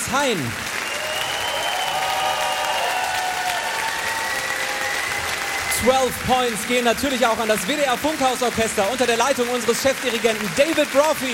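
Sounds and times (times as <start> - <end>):
concert audience applause: 0.0 - 11.3
speech: 0.1 - 0.7, 5.8 - 11.3.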